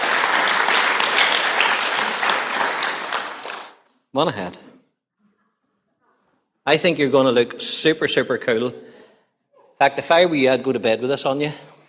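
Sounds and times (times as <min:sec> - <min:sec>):
audience applause: 0:00.0 - 0:03.8
speech: 0:04.2 - 0:04.7, 0:06.7 - 0:08.9, 0:09.8 - 0:11.7.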